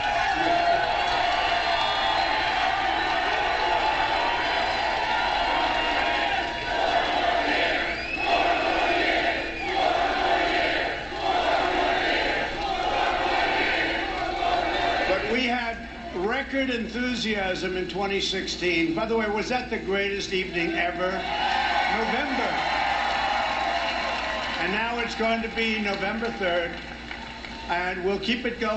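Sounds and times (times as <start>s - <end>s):
whoops and chant-like voices: 0.0s - 15.3s, 21.2s - 24.6s
large crowd at a political rally cheering and shouting: 0.0s - 15.4s, 21.0s - 27.9s
speech: 16.7s - 22.7s, 24.6s - 27.0s, 27.7s - 28.7s.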